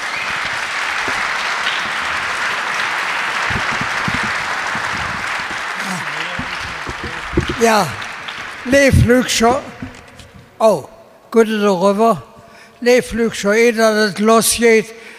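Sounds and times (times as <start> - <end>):
thunderous applause: 0.0 - 10.6
speech: 7.6 - 8.0, 8.6 - 9.7, 10.6 - 15.0.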